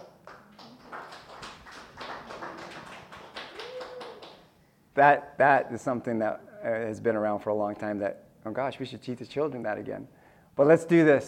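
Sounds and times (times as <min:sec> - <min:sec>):
hands clapping to a song: 0:00.0 - 0:04.5
speech: 0:05.0 - 0:11.2.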